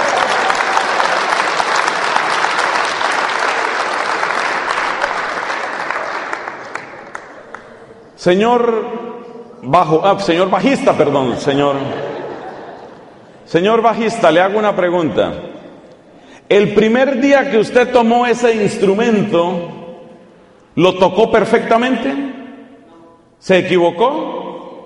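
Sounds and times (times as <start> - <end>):
crowd applauding: 0.0 - 7.8
speech: 8.2 - 12.1, 13.5 - 15.5, 16.5 - 19.8, 20.8 - 22.4, 23.4 - 24.4
laughter: 10.9 - 13.5.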